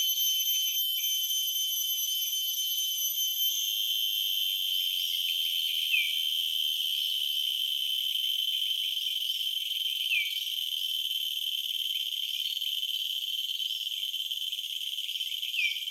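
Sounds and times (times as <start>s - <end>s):
cicada ringing: 0.0s - 15.0s.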